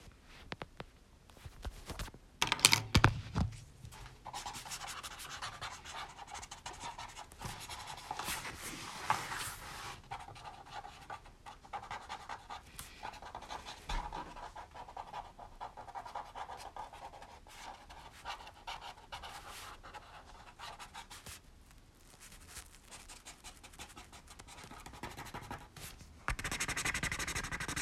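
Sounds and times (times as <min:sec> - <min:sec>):
noise: 0:00.0 - 0:27.7.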